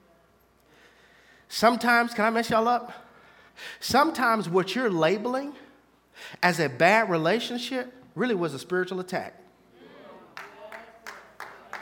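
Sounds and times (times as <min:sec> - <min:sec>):
speech: 0:01.5 - 0:03.0, 0:03.6 - 0:05.6, 0:06.2 - 0:09.4
murmur of voices: 0:09.7 - 0:11.8
person golf clapping: 0:10.3 - 0:11.8.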